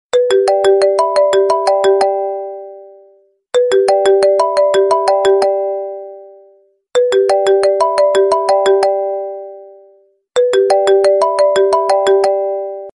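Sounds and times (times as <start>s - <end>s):
Apple phone ring: 0.2s - 2.4s, 3.6s - 6.0s, 7.0s - 9.6s, 10.4s - 12.9s.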